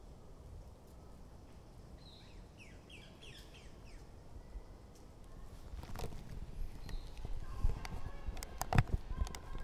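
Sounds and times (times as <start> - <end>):
birds at the Poudrerie: 2.0 - 9.6.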